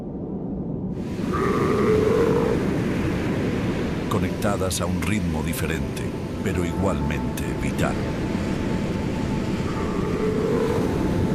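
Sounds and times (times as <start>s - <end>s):
low rumble of wind or water: 0.0s - 11.3s
seal calls: 1.2s - 2.7s, 9.6s - 11.3s
speech: 4.2s - 8.4s.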